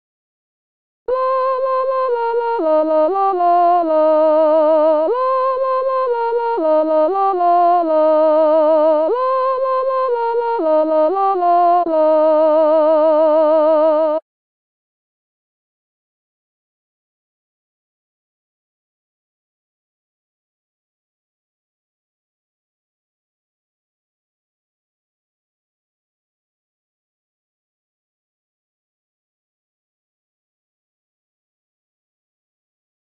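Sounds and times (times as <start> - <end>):
soprano singing: 1.1 - 14.2.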